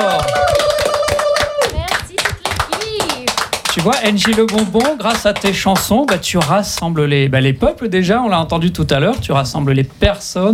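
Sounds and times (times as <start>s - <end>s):
audience clapping: 0.0s - 7.0s
speech: 3.8s - 10.5s.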